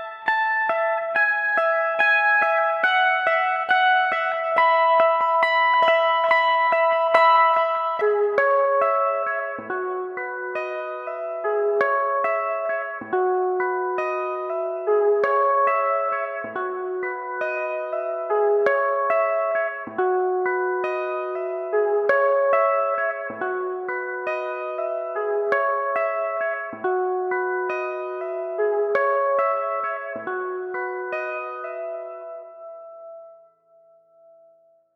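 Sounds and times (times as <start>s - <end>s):
two guitars playing: 0.0s - 32.5s.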